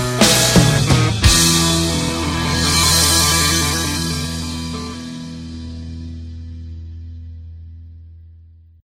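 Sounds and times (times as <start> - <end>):
fail sound: 0.2 - 5.3.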